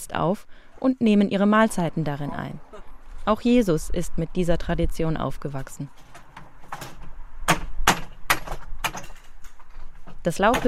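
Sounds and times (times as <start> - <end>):
speech: 0.0 - 6.0, 10.2 - 10.6
faint creak of wood: 5.9 - 10.6
hammer knocking nails out of wooden slats: 6.2 - 9.2.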